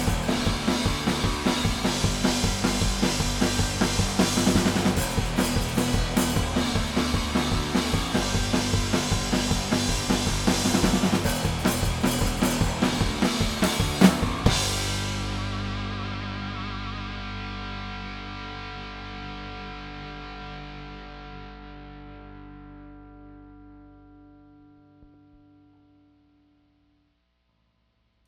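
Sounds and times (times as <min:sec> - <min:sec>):
drum stems: 0:00.0 - 0:21.6.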